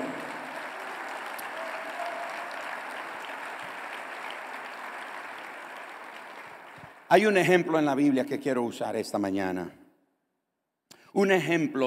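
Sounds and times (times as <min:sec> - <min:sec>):
audience applauding: 0:00.0 - 0:07.1
speech: 0:07.1 - 0:09.8, 0:11.2 - 0:11.8.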